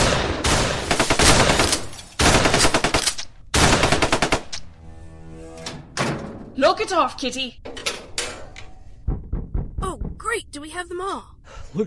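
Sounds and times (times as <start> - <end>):
automatic gunfire: 0.0 - 4.5
speech: 6.6 - 7.7, 10.8 - 11.8.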